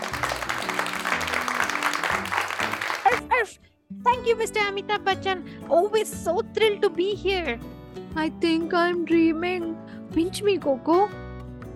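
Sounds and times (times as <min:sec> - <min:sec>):
audience round of applause: 0:00.0 - 0:03.2
speech: 0:04.2 - 0:11.2.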